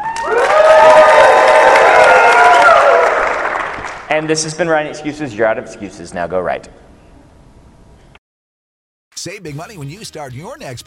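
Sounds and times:
convention audience applauding: 0.0 - 4.1
speech: 4.1 - 6.8, 9.2 - 10.8.

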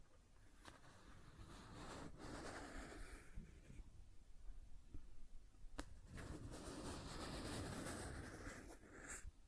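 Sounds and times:
scratching and tracing: 0.5 - 3.8, 6.0 - 9.3.

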